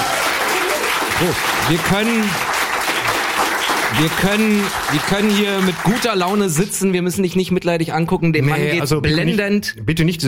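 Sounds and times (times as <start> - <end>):
whoops and cheering voices: 0.0 - 1.1
audience applause: 0.0 - 6.8
speech: 1.2 - 2.5, 3.9 - 10.2.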